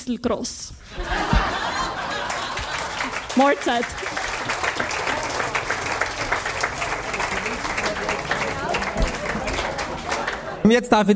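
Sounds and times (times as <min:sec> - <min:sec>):
speech: 0:00.0 - 0:01.5, 0:03.4 - 0:04.3, 0:10.6 - 0:11.1
laughter: 0:00.9 - 0:10.8
audience applause: 0:01.0 - 0:10.7.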